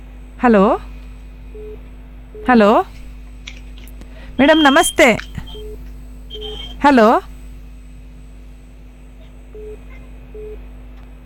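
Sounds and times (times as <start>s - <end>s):
constant low telephone line hum: 0.0s - 11.2s
speech: 0.4s - 0.9s, 2.4s - 3.0s, 4.4s - 5.3s, 6.8s - 7.3s
telephone tone after a call cuts off: 4.4s - 7.2s.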